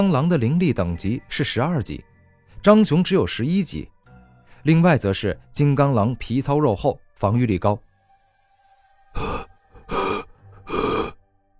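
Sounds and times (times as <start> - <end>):
speech: 0.0 - 3.9, 4.6 - 7.9, 9.2 - 10.0
heavy panting: 9.2 - 11.2.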